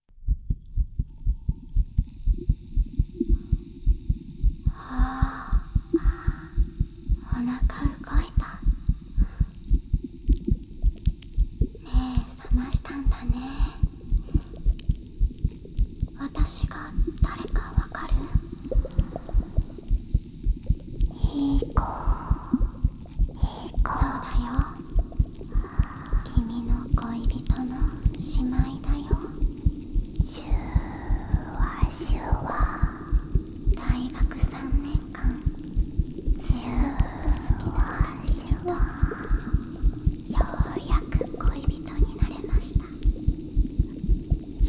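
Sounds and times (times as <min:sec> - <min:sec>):
heartbeat: 0:00.0 - 0:44.6
carbonated drink fizzing: 0:02.2 - 0:44.6
person whispering: 0:04.7 - 0:09.6, 0:11.8 - 0:14.6, 0:16.2 - 0:19.8, 0:21.0 - 0:43.2.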